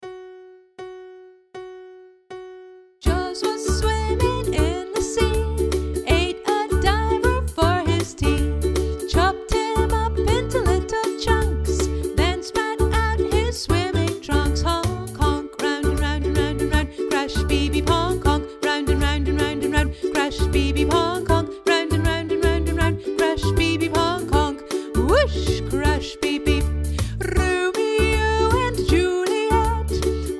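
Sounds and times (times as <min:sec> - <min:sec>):
vocals: 0:03.0 - 0:30.3.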